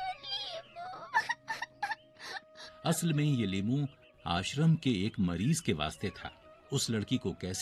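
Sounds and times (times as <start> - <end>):
girl crying: 0.0 - 2.8
speech: 2.8 - 7.6.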